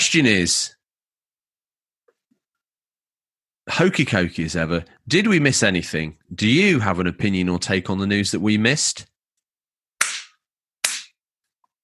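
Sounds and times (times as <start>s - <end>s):
speech: 0.1s - 0.8s, 3.7s - 9.1s
hand claps: 10.0s - 11.2s.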